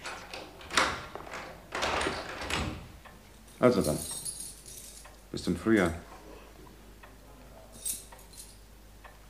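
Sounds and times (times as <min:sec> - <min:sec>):
house door being closed and locked: 0:00.1 - 0:03.0
speech: 0:03.6 - 0:04.1, 0:05.4 - 0:06.1.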